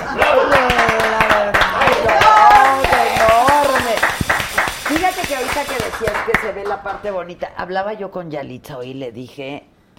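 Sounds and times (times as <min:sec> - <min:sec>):
applause: 0:00.1 - 0:07.1
speech: 0:06.0 - 0:09.9.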